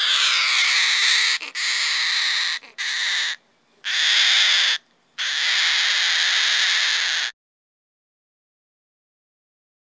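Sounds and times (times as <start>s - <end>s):
Goffin's cockatoo screeching: 0.0s - 7.4s.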